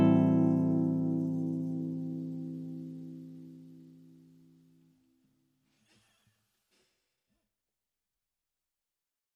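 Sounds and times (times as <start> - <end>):
strummed guitars: 0.0 - 4.8.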